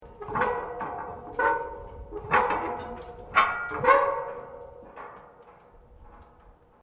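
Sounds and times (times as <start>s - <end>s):
large metal creaking: 0.0s - 6.8s.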